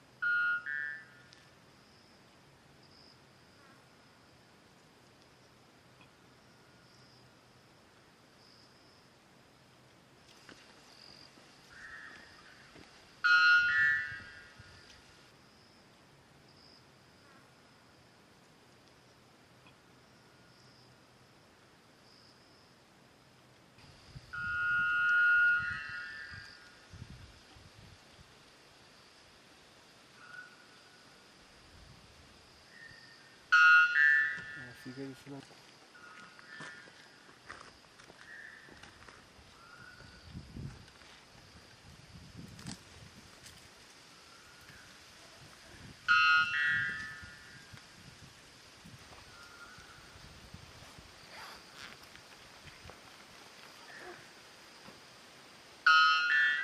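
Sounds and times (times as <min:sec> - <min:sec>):
white bellbird: 0:00.2 - 0:01.4, 0:13.2 - 0:14.7, 0:24.3 - 0:26.8, 0:32.7 - 0:35.2, 0:46.0 - 0:47.6, 0:55.8 - 0:56.6.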